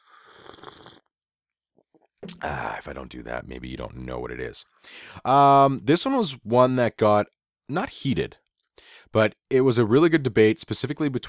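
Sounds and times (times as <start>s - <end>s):
sipping coffee: 0.0s - 1.1s, 2.2s - 2.7s
speech: 2.4s - 11.2s.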